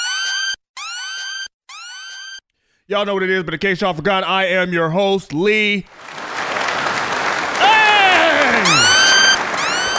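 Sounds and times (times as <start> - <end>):
speech: 2.9 - 6.2
crowd applause: 5.9 - 9.9
voices shouting and whooping: 7.6 - 9.9.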